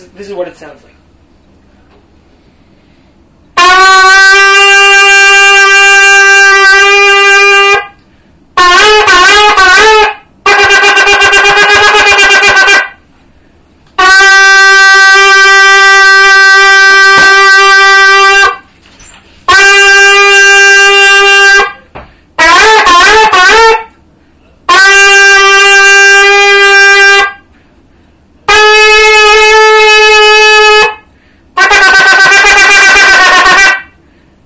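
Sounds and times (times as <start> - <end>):
speech: 0.0 - 1.0
loud brassy shofar blasts: 3.6 - 8.0, 8.6 - 13.0, 14.0 - 18.7, 19.5 - 24.0, 24.7 - 27.5, 28.5 - 34.0.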